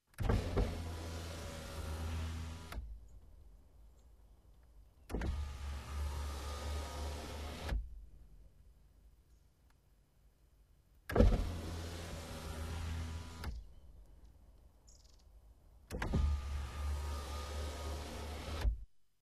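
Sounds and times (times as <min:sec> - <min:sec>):
car electric windows moving down and up: 0:00.2 - 0:03.0, 0:05.1 - 0:08.0, 0:11.1 - 0:13.9, 0:15.9 - 0:18.9.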